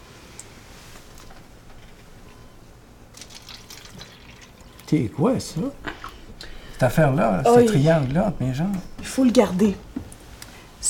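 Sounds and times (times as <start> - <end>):
water poured into a glass: 3.1 - 4.9
speech: 4.9 - 5.9, 6.8 - 9.9.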